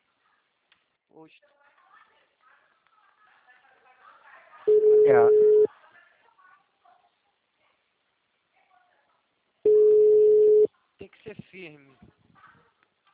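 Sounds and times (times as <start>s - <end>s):
speech: 1.2s - 1.6s, 4.7s - 5.5s, 11.6s - 12.2s
telephone line ringing unanswered: 4.7s - 5.7s, 9.7s - 10.7s.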